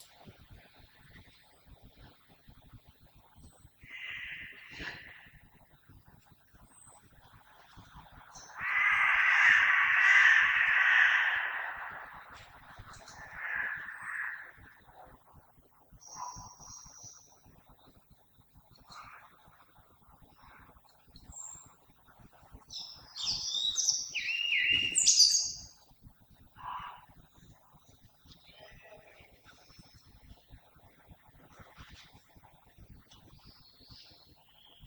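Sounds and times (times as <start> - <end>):
blackbird singing: 3.8 - 5.4, 8.4 - 14.9, 16.0 - 17.3, 22.7 - 25.8.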